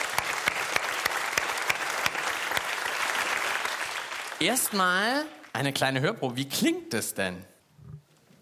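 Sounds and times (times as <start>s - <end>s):
audience applause: 0.0s - 5.2s
speech: 4.4s - 7.5s.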